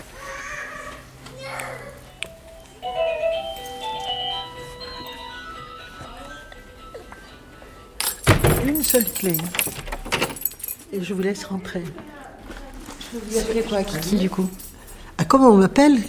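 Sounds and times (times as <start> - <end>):
doorbell ringing: 2.0 - 10.6
speech: 8.8 - 9.8, 10.9 - 12.1, 13.1 - 14.6, 15.3 - 16.0.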